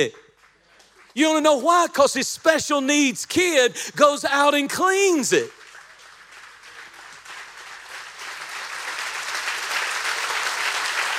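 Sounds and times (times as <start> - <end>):
speech: 0.0 - 0.2, 1.2 - 5.6
audience applause in a church: 5.1 - 11.1.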